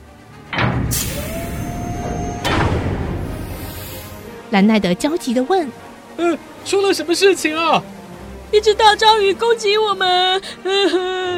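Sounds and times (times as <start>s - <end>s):
submarine hatch door being opened with a heavy thud: 0.5s - 3.4s
speech: 0.9s - 1.3s, 4.5s - 11.3s
thin sustained squeal: 1.0s - 2.7s.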